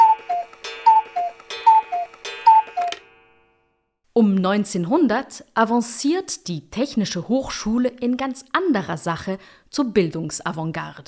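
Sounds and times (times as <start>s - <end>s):
cuckoo clock ticking: 0.0s - 3.6s
speech: 4.2s - 11.0s.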